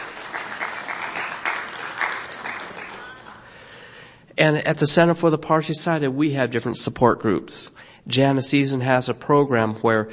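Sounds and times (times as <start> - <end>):
audience applause: 0.0 - 3.6
speech: 4.4 - 10.1.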